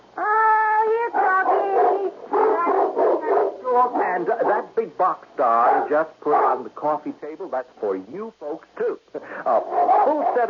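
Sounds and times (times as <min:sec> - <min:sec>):
Doberman Pinscher barking: 0:01.1 - 0:03.7, 0:05.5 - 0:06.6, 0:09.5 - 0:10.4
speech: 0:03.8 - 0:10.4.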